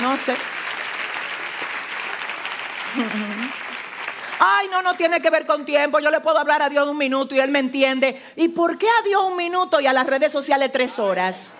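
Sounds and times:
crowd applauding: 0.0s - 5.2s
speech: 0.1s - 0.6s, 2.9s - 3.6s, 4.4s - 11.5s
laughter: 2.9s - 3.5s.

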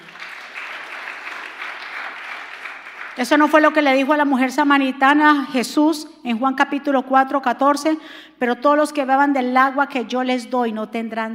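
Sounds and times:
loud applause: 0.0s - 3.4s
speech: 3.2s - 11.3s.

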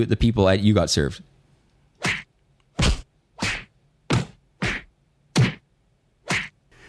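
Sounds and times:
speech: 0.0s - 1.3s
staged punch whacks fight sound effects: 2.0s - 5.6s, 6.2s - 6.8s.

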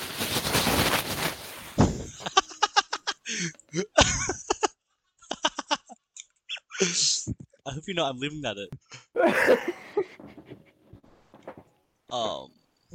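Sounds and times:
plastic bag rustling: 0.0s - 1.8s
laughter: 2.1s - 6.0s, 8.9s - 10.7s
speech: 6.8s - 9.8s, 12.1s - 12.9s.

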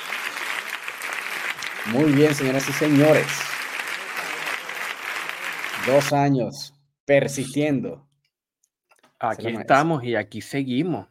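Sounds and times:
applause: 0.0s - 6.4s
speech: 1.8s - 3.5s, 5.8s - 8.1s, 9.2s - 11.0s.

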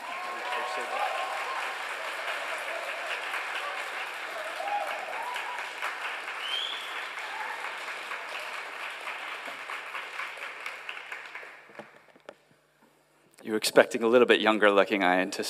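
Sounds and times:
voices rising over the clapping: 0.0s - 11.6s
church congregation applauding to welcome a speaker: 0.0s - 12.1s
speech: 13.5s - 15.4s.

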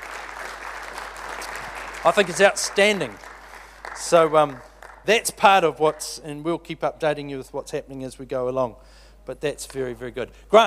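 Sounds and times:
audience applause: 0.0s - 5.1s
speech: 2.0s - 3.3s, 4.0s - 10.6s.

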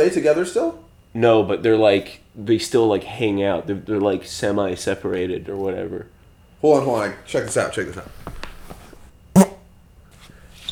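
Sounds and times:
speech: 0.0s - 8.3s
fart into a microphone: 9.4s - 9.6s.

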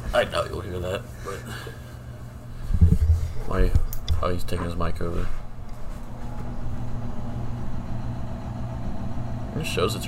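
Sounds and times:
speech: 0.1s - 1.9s, 3.4s - 5.4s, 9.6s - 10.0s
washing machine running: 2.5s - 10.0s.

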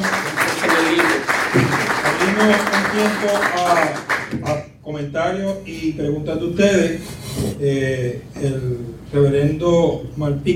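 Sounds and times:
audience applause: 0.0s - 4.4s
speech: 2.4s - 4.1s, 5.0s - 10.5s.

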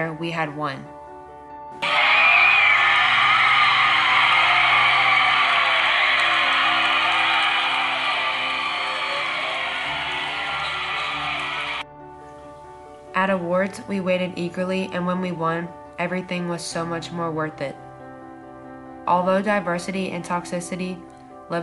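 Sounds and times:
speech: 0.0s - 1.0s, 13.2s - 17.8s, 19.1s - 21.6s
crowd screaming: 1.8s - 11.8s.

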